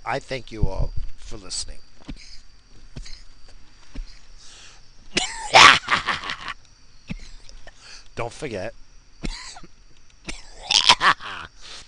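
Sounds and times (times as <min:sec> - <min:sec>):
speech: 0:00.0 - 0:02.3, 0:08.2 - 0:09.4
person coughing: 0:05.2 - 0:05.6, 0:09.2 - 0:09.7, 0:10.3 - 0:11.0.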